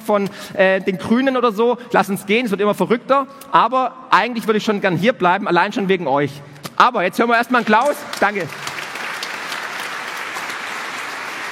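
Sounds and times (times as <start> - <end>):
speech: 0.1 - 8.6
audience applause: 7.7 - 11.4.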